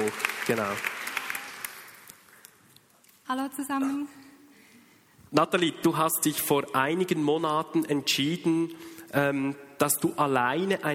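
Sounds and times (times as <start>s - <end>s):
audience applause: 0.0s - 2.3s
speech: 0.1s - 0.9s, 3.3s - 4.2s, 5.3s - 10.9s.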